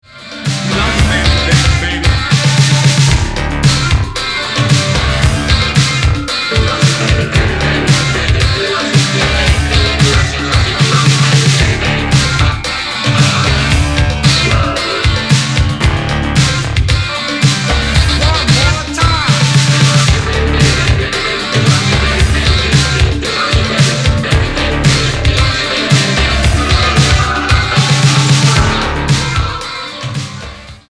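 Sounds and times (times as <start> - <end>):
extended vocal mix: 0.0 - 30.8.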